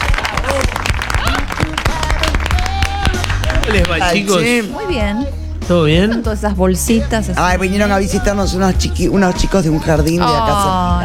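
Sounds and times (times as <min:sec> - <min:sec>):
audience applause: 0:00.0 - 0:04.2
speech: 0:03.7 - 0:11.0.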